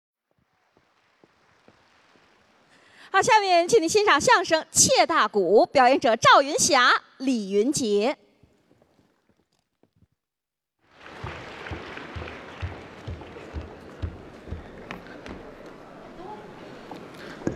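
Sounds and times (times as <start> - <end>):
speech: 3.1 - 8.2
audience applause: 10.9 - 16.1.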